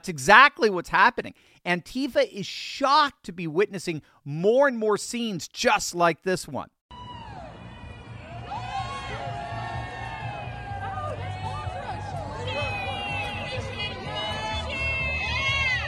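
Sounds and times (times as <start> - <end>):
speech: 0.0 - 6.8
crowd cheering outdoors for ICE officers: 6.9 - 15.8.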